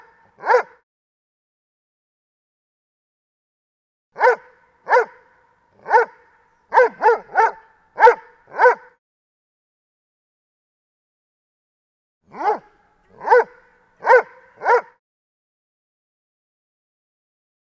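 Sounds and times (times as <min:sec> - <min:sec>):
Dobermann barking: 0:00.0 - 0:00.8, 0:04.2 - 0:09.0, 0:12.3 - 0:15.0.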